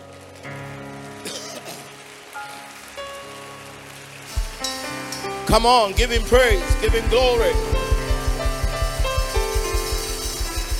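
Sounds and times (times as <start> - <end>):
audience clapping: 0.0 - 10.7
speech: 5.5 - 7.8.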